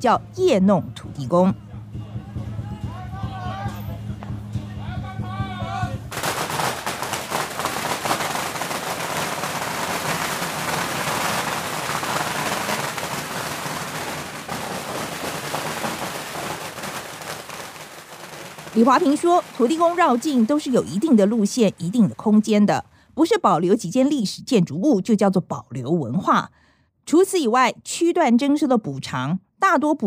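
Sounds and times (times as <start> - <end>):
speech: 0.0 - 1.6, 18.8 - 30.0
firecrackers exploding: 6.1 - 22.8.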